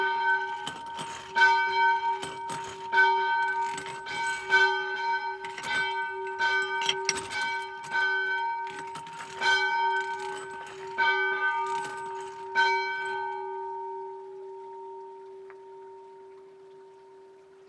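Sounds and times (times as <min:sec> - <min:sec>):
bell with chain: 0:00.0 - 0:14.1.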